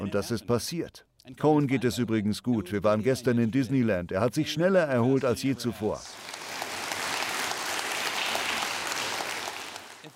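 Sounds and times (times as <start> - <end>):
speech: 0.1 - 6.4
audience applause: 6.1 - 10.1.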